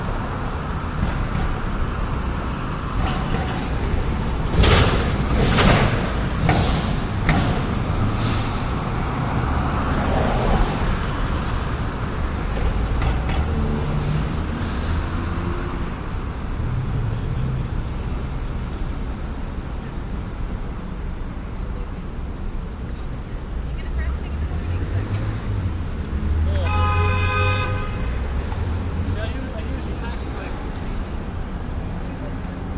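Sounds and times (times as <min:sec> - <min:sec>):
buses: 0:00.0 - 0:32.7
cars: 0:00.0 - 0:32.7
night traffic rumbling with cars and buses: 0:00.0 - 0:32.7.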